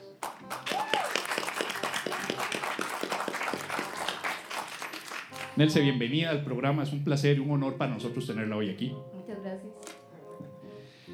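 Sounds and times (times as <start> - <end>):
applause welcoming a guest: 0.2 - 5.6
speech: 5.6 - 9.1.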